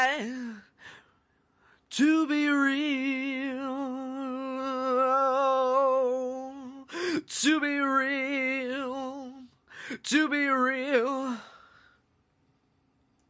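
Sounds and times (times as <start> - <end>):
man singing a cappella at 180 bpm: 0.0 - 0.8, 1.9 - 11.7.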